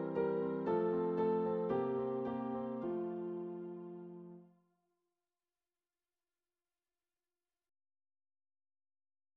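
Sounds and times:
classical MIDI piece: 0:00.0 - 0:04.5.

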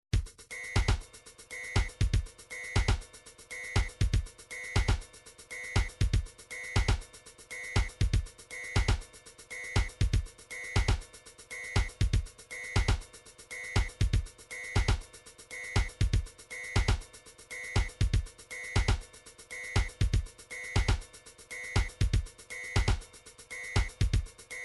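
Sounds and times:
MIDI drums: 0:00.2 - 0:03.1, 0:03.8 - 0:05.1, 0:05.8 - 0:07.2, 0:07.8 - 0:09.2, 0:09.8 - 0:15.2, 0:15.8 - 0:17.1, 0:17.7 - 0:19.1, 0:19.8 - 0:21.1, 0:21.8 - 0:23.1, 0:23.7 - 0:24.4.

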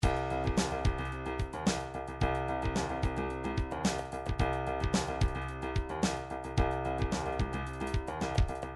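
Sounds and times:
trip hop music: 0:00.0 - 0:08.7.

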